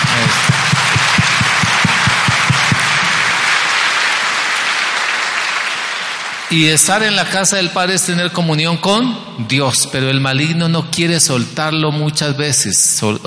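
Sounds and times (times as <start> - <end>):
crowd clapping: 0.0 - 7.6
speech: 6.5 - 13.2.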